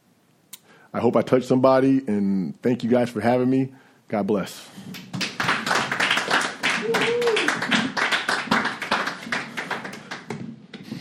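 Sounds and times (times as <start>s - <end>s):
speech: 0.9s - 5.0s, 6.9s - 7.3s
crowd applauding: 4.9s - 10.4s
crowd cheering: 5.4s - 10.2s.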